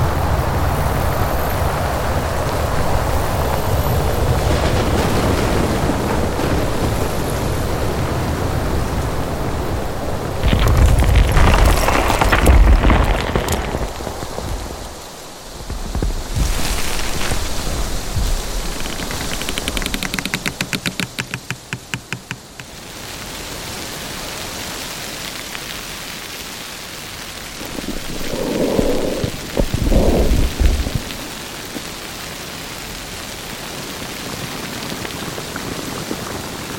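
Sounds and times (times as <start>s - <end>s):
alien planet ambience: 0.0s - 21.4s, 27.2s - 32.1s.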